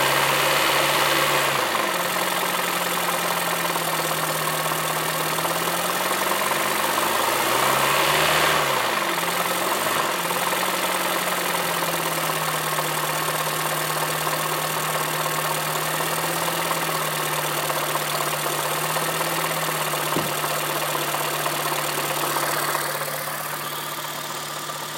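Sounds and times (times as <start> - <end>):
dying engine loud knocking on a cold morning start: 0.1 - 24.9.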